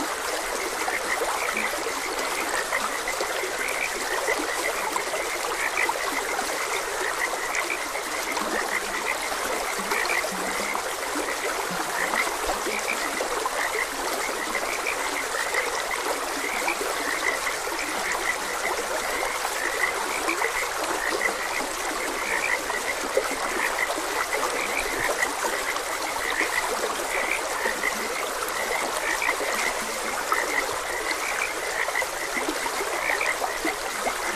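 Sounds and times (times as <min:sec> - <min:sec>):
frogs croaking in chorus: 0:00.0 - 0:34.3
stream water rushing: 0:00.0 - 0:34.3.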